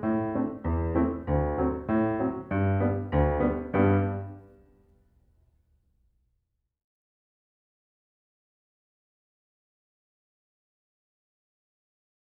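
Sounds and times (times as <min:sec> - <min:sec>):
piano accompaniment: 0:00.0 - 0:04.7.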